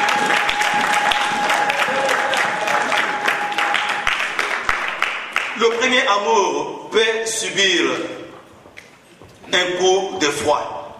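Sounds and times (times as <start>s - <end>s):
crowd applause: 0.0s - 5.8s
speech: 6.0s - 8.2s, 9.5s - 10.7s.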